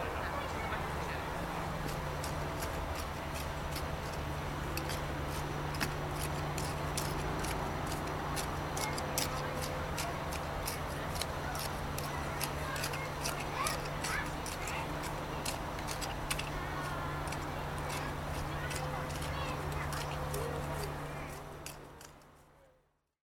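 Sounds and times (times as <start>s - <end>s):
park soundscape: 0.0s - 23.0s.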